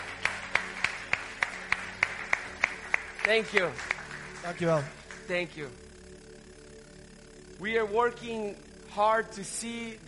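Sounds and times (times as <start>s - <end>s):
audience rhythmic clapping in unison: 0.0s - 5.8s
speech: 3.2s - 5.9s, 7.6s - 10.0s.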